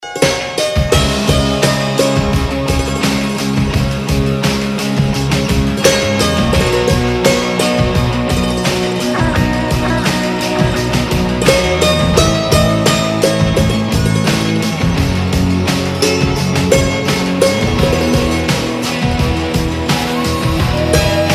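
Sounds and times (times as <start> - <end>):
instrumental music: 0.0 - 21.3
laughter: 8.6 - 12.2.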